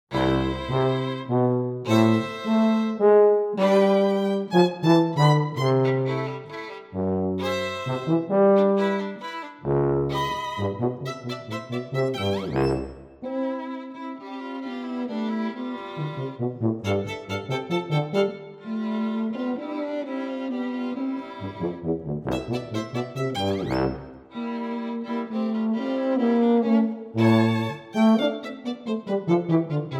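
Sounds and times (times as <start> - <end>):
tuba playing a Ländler: 0.1 - 13.5, 16.0 - 18.7, 21.4 - 24.3, 25.7 - 29.9
violin playing a Ländler: 0.1 - 29.9.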